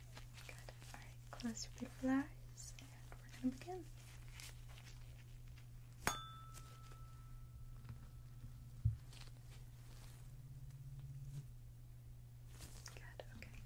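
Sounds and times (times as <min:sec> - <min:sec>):
low hum: 0:00.0 - 0:13.6
speech: 0:01.4 - 0:02.4, 0:03.4 - 0:04.0
tuning fork struck and ringing: 0:06.0 - 0:08.8.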